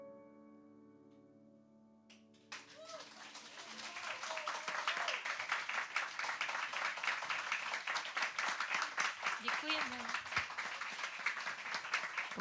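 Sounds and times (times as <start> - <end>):
live audience applause in Radiokafe Vinohradská 12: 2.5 - 12.3.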